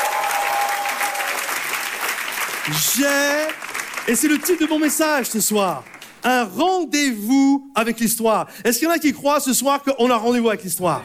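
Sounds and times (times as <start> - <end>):
audience applause: 0.0 - 6.2
speech: 2.6 - 11.0.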